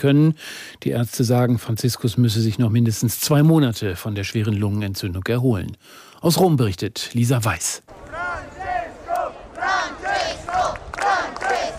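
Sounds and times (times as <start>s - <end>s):
speech: 0.0s - 8.1s
crowd chanting: 7.9s - 11.7s.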